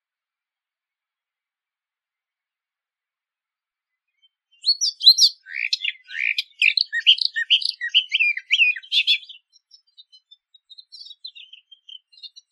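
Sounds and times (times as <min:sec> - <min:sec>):
eastern orphean warbler: 0:04.2 - 0:12.5.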